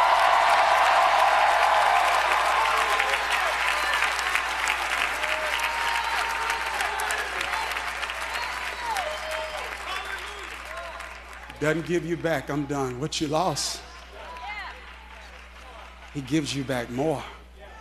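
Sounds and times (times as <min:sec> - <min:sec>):
church congregation clapping: 0:00.0 - 0:17.3
church congregation cheering: 0:00.0 - 0:17.7
speech: 0:11.6 - 0:13.9, 0:16.2 - 0:17.4.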